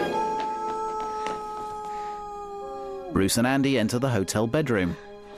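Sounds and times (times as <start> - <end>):
Great Dane howling by a window in a hotel bedroom: 0.1 - 3.2
speech: 3.1 - 5.1.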